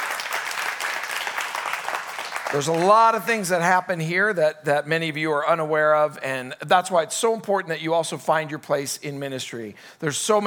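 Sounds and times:
audience applause: 0.0s - 3.2s
speech: 2.5s - 10.4s.

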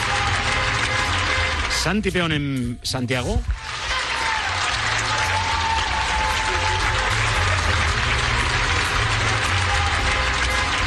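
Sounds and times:
people applauding: 0.0s - 2.3s, 3.5s - 10.8s
speech: 1.8s - 3.7s.

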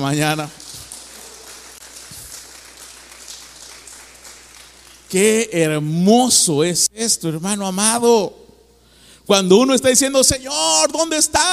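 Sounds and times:
speech: 0.0s - 0.6s, 5.1s - 8.4s, 9.3s - 11.5s
applause: 0.0s - 5.4s.

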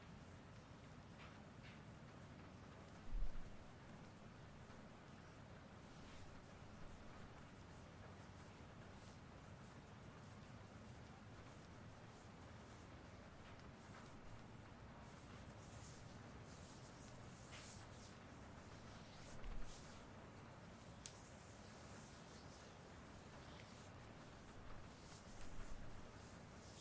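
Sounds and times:
shoulder massage rubbing and kneading: 0.5s - 26.7s.

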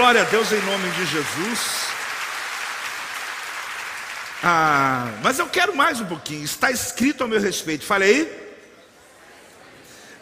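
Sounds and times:
audience applauding: 0.0s - 5.6s
speech: 0.1s - 2.0s, 4.4s - 8.4s.

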